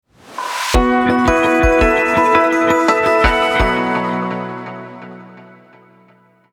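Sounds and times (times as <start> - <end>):
jingle: 0.8 - 5.9.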